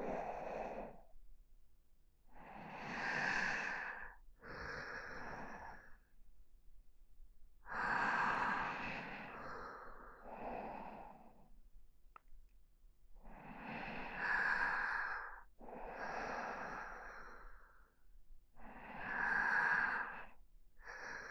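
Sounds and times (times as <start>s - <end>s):
sleeping breath: 0.0s - 1.1s, 2.4s - 6.1s, 7.7s - 11.5s, 13.2s - 18.0s, 18.6s - 21.2s.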